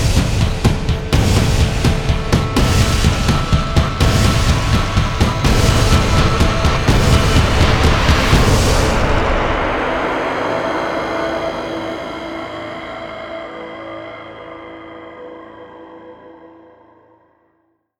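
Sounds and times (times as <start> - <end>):
drum effects: 0.0 - 11.0.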